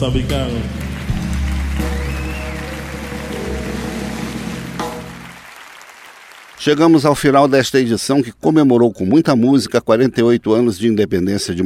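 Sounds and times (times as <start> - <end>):
speech: 0.0 - 0.8, 6.6 - 11.6
audience applause: 0.0 - 7.5.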